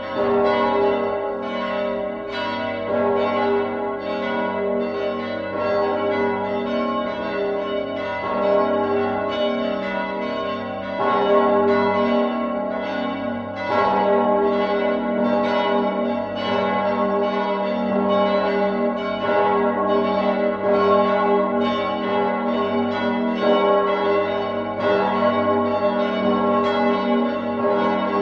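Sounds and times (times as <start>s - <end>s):
cathedral bells partial peal on G sharp: 0.0s - 28.2s.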